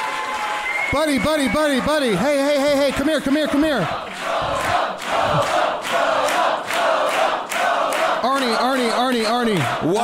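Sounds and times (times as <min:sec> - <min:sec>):
excited crowd cheering: 0:00.0 - 0:10.0
speech: 0:00.9 - 0:06.3, 0:08.4 - 0:10.0.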